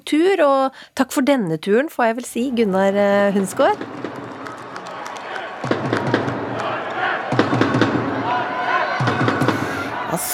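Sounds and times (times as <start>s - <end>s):
speech: 0.1s - 4.0s
crowd cheering at handball match: 2.6s - 10.3s.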